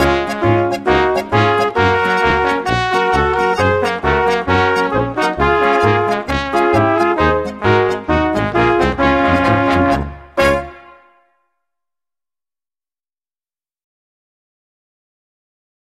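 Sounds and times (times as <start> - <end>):
polka music: 0.0 - 11.4.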